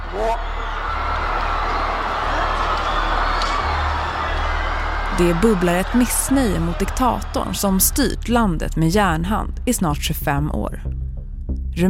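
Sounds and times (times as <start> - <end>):
crowd booing and shouting: 0.0 - 8.2
speech: 0.1 - 0.8, 5.2 - 11.0.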